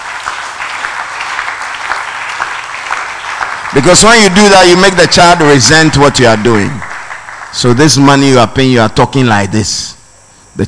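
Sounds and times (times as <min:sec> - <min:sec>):
audience clapping: 0:00.0 - 0:08.5
speech: 0:03.7 - 0:06.8, 0:07.5 - 0:10.0.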